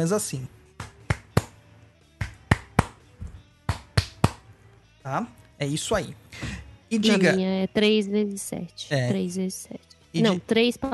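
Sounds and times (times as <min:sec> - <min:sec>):
speech: 0:00.0 - 0:00.6, 0:05.0 - 0:10.9
ritual hand claps: 0:00.8 - 0:01.6, 0:02.2 - 0:04.5.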